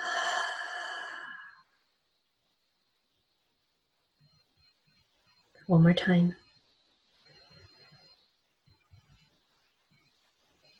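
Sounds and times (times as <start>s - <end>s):
deep clearing breath during a breathing exercise: 0.0s - 1.6s
speech: 5.7s - 6.4s.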